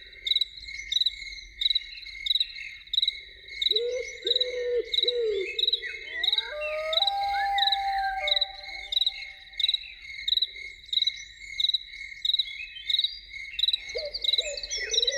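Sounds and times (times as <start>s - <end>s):
insect chirps: 0.3s - 13.0s, 13.6s - 15.1s
loon quavering and wailing call: 3.7s - 9.6s, 13.9s - 15.1s.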